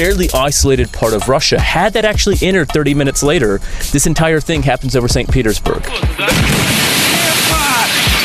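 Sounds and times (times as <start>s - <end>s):
speech: 0.0s - 6.9s
meteor exploding in the air over Chelyabinsk, Russia: 6.3s - 8.1s.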